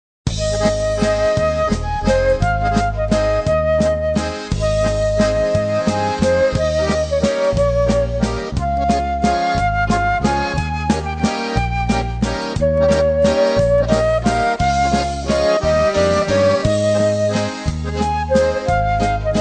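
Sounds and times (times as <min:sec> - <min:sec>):
waltz music: 0:00.3 - 0:19.4.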